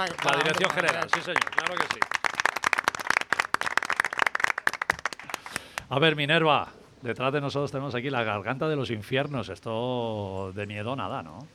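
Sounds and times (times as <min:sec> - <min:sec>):
speech: 0:00.0 - 0:02.2, 0:05.9 - 0:11.5
applause: 0:00.0 - 0:05.9.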